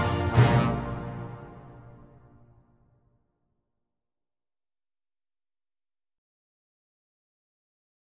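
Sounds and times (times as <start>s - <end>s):
anniversary fanfare: 0.0s - 2.5s.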